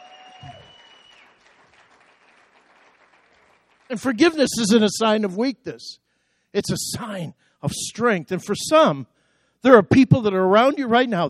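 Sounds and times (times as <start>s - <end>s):
audience clapping: 0.0s - 5.5s
speech: 3.9s - 11.2s.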